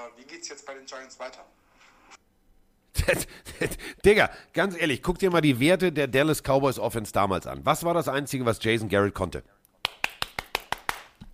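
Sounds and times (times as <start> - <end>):
speech: 0.1 - 1.6, 3.1 - 9.6
hand clapping: 9.8 - 11.3.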